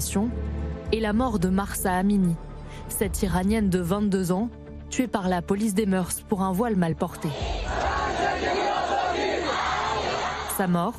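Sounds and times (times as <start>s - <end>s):
speech: 0.0s - 7.9s, 10.6s - 10.9s
protest crowd shouting in anger: 7.3s - 10.6s.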